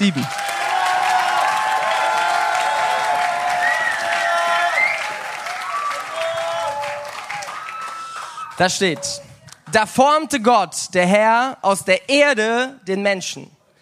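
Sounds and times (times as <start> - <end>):
speech: 0.0 - 0.4, 8.6 - 13.6
loud audience applause: 0.0 - 9.7.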